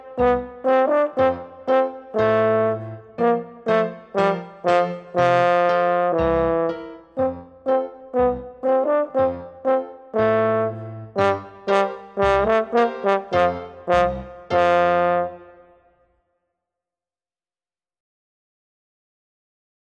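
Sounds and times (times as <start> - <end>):
accompaniment: 0.0 - 15.4
horn solo: 0.0 - 15.8.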